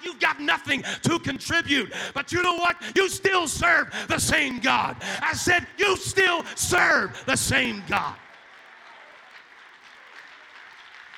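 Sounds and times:
speech: 0.2s - 8.2s
audience applause: 3.9s - 11.1s.

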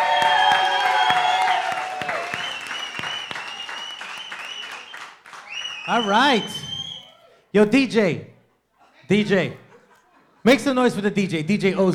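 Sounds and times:
live show audience clapping: 0.0s - 6.6s
audience shrill whistles: 0.0s - 7.3s
speech: 5.9s - 6.6s, 7.6s - 8.3s, 9.1s - 9.6s, 10.4s - 11.9s.

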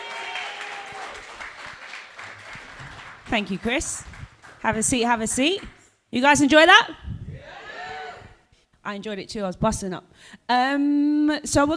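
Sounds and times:
audience round of applause: 0.0s - 4.7s
speech: 3.3s - 7.0s, 8.9s - 11.7s.

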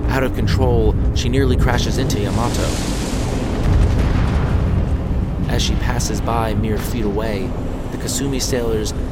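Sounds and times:
speech: 0.2s - 3.0s, 5.5s - 9.1s
torpedo explosion on destroyer stern: 0.9s - 7.9s.

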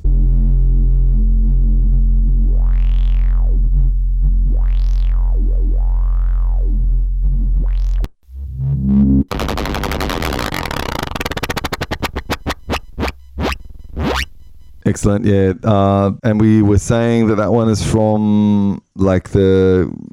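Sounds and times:
loud synthesizer bass track: 0.0s - 14.9s
speech: 15.0s - 20.1s.

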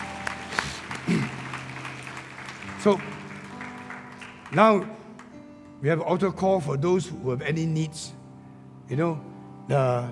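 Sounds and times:
audience clapping hands: 0.0s - 5.5s
speech: 2.8s - 3.2s, 4.5s - 5.0s, 5.8s - 8.2s, 8.9s - 10.1s.

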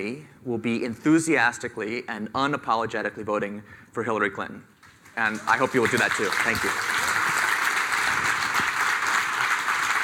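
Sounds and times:
speech: 0.0s - 7.0s
audience applause: 5.2s - 10.0s.

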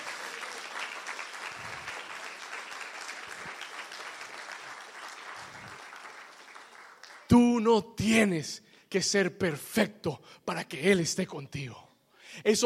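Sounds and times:
audience applauding: 0.0s - 7.4s
speech: 7.3s - 11.8s, 12.4s - 12.6s.

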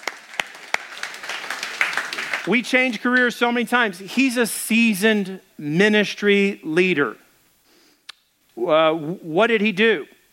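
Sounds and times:
audience applause: 0.0s - 3.3s
speech: 2.4s - 7.2s, 8.6s - 10.1s.

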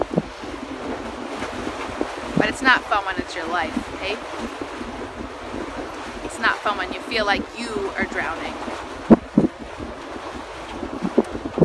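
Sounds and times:
huge waves splashing at a lake: 0.0s - 11.6s
storm wind at a lake: 0.0s - 11.6s
speech: 2.5s - 4.6s, 6.6s - 8.8s.

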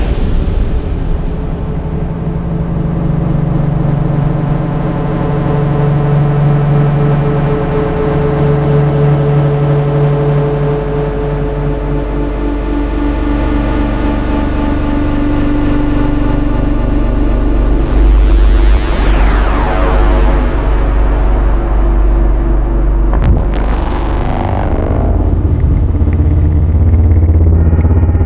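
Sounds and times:
layered synthetic drone with tonal pads: 0.0s - 28.2s
sweeping rising tones: 17.3s - 27.5s
sharp trailer impact: 17.6s - 27.4s.

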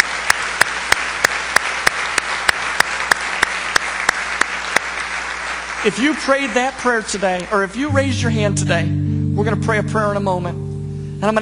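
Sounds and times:
church audience applauding: 0.0s - 7.9s
speech: 5.8s - 10.6s, 11.2s - 11.4s.

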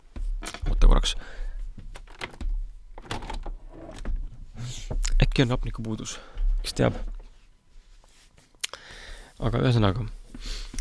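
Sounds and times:
speech: 1.0s - 1.4s, 5.4s - 7.2s, 9.4s - 10.6s
window being opened: 1.8s - 5.2s.

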